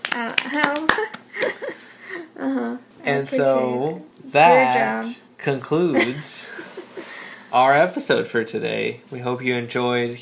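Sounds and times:
one person clapping hands: 0.0s - 1.6s
speech: 0.2s - 1.7s, 2.4s - 6.6s, 7.5s - 10.2s.

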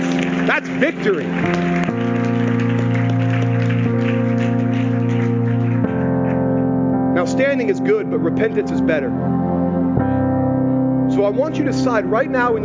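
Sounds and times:
audience clapping: 0.0s - 6.8s
sustained droning organ chords: 0.0s - 12.6s
speech: 0.5s - 2.1s, 7.4s - 9.4s, 11.2s - 12.6s.

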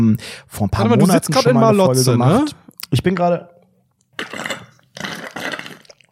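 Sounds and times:
speech: 0.0s - 3.5s
person slurping a cocktail: 4.1s - 6.1s.

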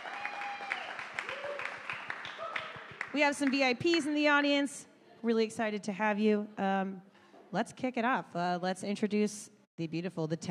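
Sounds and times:
whistles and whoops: 0.0s - 2.9s
audience applauding: 0.0s - 3.6s
speech: 3.1s - 10.4s.

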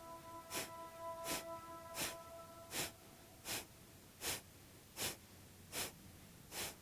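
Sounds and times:
faint sustained tones: 0.0s - 3.5s
forceful exhalations of Kapalabhati yoga breathing: 0.4s - 6.8s.

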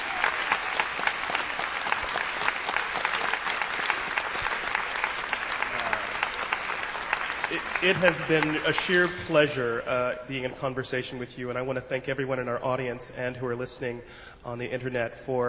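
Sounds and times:
audience applause: 0.0s - 9.3s
speech: 7.5s - 15.4s.

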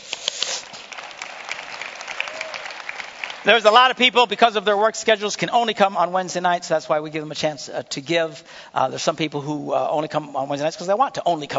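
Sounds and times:
audience clapping: 0.0s - 4.4s
speech: 3.4s - 11.5s.

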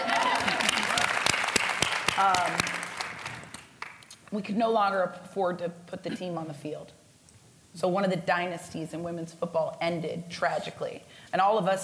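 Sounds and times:
audience applause: 0.0s - 4.0s
speech: 2.2s - 2.8s, 4.3s - 7.0s, 7.7s - 11.8s.

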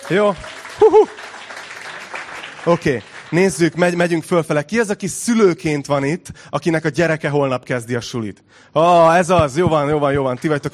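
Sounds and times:
voices calling and cheering: 0.0s - 1.4s
audience applause: 0.0s - 4.0s
speech: 0.1s - 1.4s, 2.6s - 10.7s.

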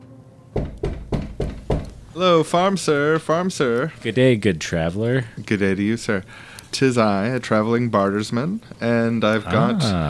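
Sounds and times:
knocks on a farmhouse door: 0.6s - 2.0s
speech: 2.2s - 10.0s.

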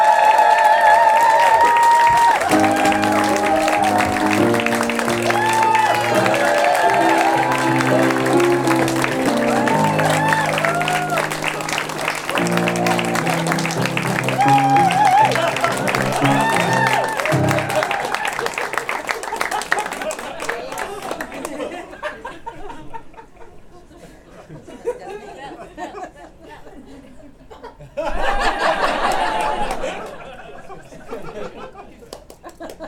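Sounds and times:
audience applause: 0.0s - 21.8s, 28.4s - 30.6s
laughter: 1.2s - 32.8s.

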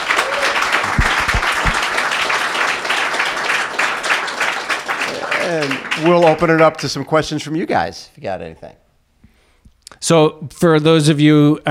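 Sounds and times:
audience round of applause: 0.0s - 7.0s
speech: 5.6s - 8.8s, 10.0s - 11.6s.

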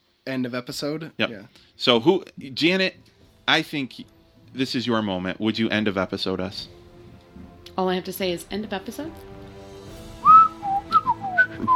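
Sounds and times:
speech: 0.2s - 6.8s, 7.8s - 9.4s
person whistling a bird call imitation: 10.2s - 11.7s.

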